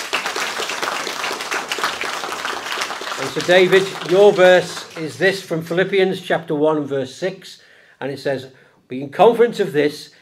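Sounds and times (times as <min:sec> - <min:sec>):
audience applause: 0:00.0 - 0:05.4
speech: 0:03.2 - 0:10.2.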